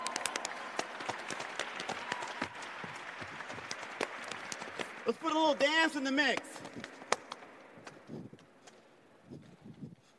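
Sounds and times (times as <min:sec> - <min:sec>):
crowd applauding: 0:00.0 - 0:08.0
speech: 0:05.1 - 0:06.9.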